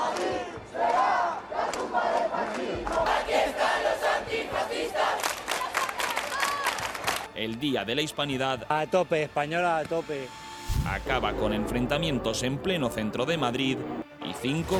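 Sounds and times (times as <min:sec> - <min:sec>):
protest crowd shouting and chanting: 0:00.0 - 0:06.8
speech: 0:07.4 - 0:14.7.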